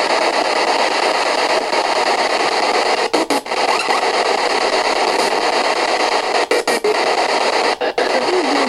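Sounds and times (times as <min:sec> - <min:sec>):
distorted sound: 0:00.0 - 0:08.6.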